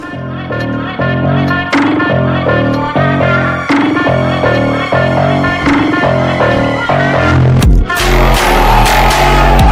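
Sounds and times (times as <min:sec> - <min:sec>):
epic phonk music: 0:00.0 - 0:09.6.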